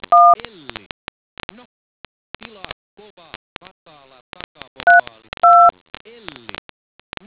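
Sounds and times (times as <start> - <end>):
DTMF tones: 0.2 - 0.4, 4.9 - 5.7.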